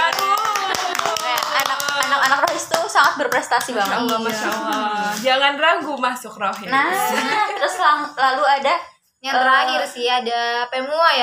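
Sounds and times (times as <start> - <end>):
crowd hand clapping applause: 0.0 - 5.2
speech: 3.0 - 11.2
laughter: 3.8 - 5.3, 6.7 - 8.4.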